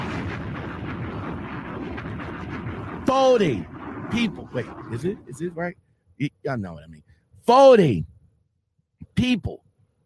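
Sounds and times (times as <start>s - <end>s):
bomb explosion sound effect: 0.0s - 5.6s
speech: 3.1s - 8.1s, 9.1s - 9.7s.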